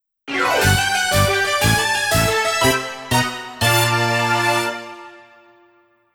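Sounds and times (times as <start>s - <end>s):
news jingle: 0.3s - 5.5s.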